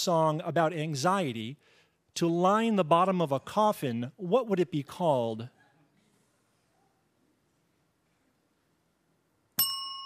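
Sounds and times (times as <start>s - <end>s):
speech: 0.0s - 5.6s
quiz ring-in bell ding: 9.6s - 10.0s.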